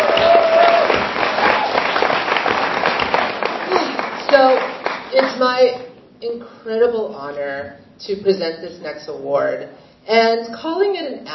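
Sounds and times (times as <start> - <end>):
audience applause: 0.0 - 5.3
speech: 5.5 - 11.3.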